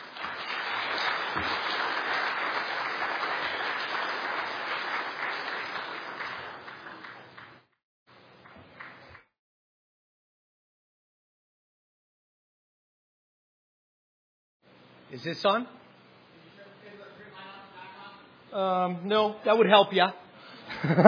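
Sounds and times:
church congregation at Woodland Christian Church applauding a guest: 0.0s - 7.7s, 8.4s - 9.2s
speech: 15.2s - 15.8s, 18.6s - 20.2s, 20.8s - 21.0s
laughter: 20.7s - 21.0s.

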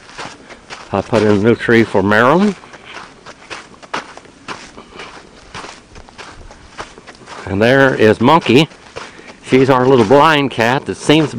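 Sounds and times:
footsteps walking outdoors: 0.0s - 11.3s
speech: 0.9s - 2.6s, 7.5s - 8.8s, 9.5s - 11.3s.

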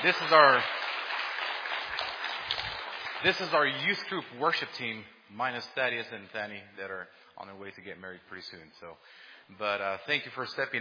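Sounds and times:
speech: 0.0s - 0.8s, 3.2s - 10.8s
audience clapping: 0.0s - 4.2s.

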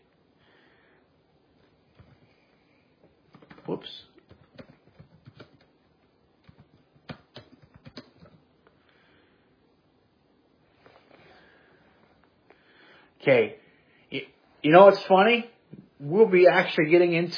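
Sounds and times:
typing on a computer keyboard: 2.0s - 2.3s, 3.3s - 5.7s, 6.4s - 8.4s
speech: 3.7s - 4.1s, 13.2s - 17.3s.

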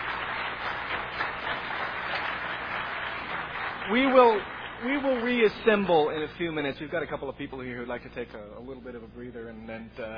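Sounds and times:
audience applause: 0.0s - 6.6s
speech: 3.9s - 10.1s.

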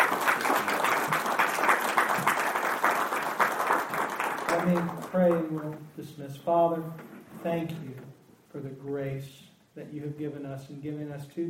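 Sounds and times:
audience applause at a Christian gathering: 0.0s - 5.5s
speech: 4.6s - 8.0s, 8.6s - 11.4s.

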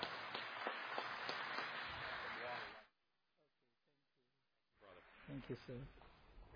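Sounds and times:
audience applause: 0.0s - 2.9s
speech: 5.3s - 6.0s.

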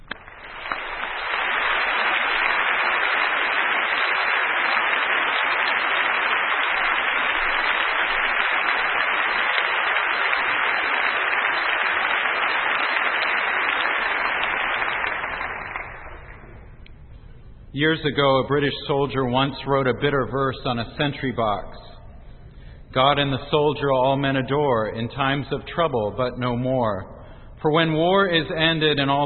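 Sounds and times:
audience applause: 0.0s - 16.6s
speech: 17.8s - 21.9s, 22.9s - 29.2s.

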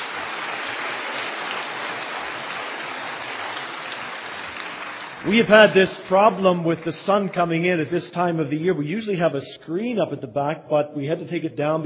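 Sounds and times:
crowd applause: 0.0s - 7.4s
speech: 5.2s - 11.8s.

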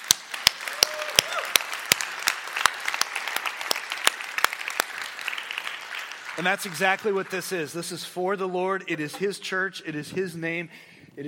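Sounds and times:
audience applauding: 0.0s - 7.7s
cheer or whoop: 0.6s - 1.6s
speech: 6.4s - 11.2s.

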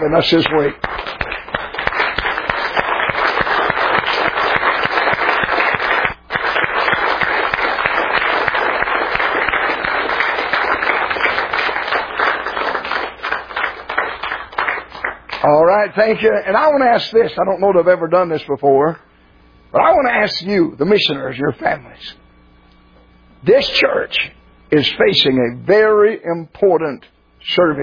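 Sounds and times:
speech: 0.0s - 1.0s, 15.9s - 19.0s, 19.7s - 22.2s, 23.4s - 27.8s
church audience applause: 0.0s - 15.4s.

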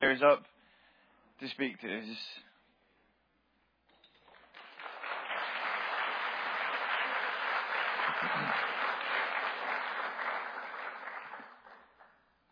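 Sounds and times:
speech: 0.2s - 0.6s, 1.4s - 2.5s
audience clapping: 4.2s - 12.5s.

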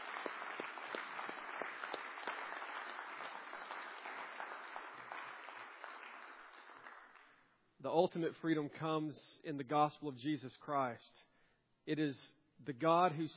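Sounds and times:
audience applauding: 0.0s - 7.4s
speech: 7.8s - 11.3s, 11.9s - 13.3s.

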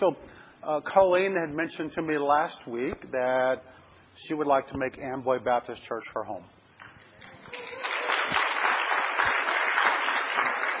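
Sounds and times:
speech: 0.0s - 6.6s
audience clapping: 6.8s - 10.7s.

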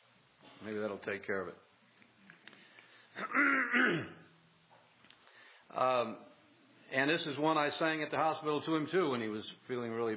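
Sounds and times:
speech: 0.6s - 1.7s, 3.2s - 4.2s, 5.7s - 6.3s, 6.9s - 10.1s
throat clearing: 3.2s - 4.3s.

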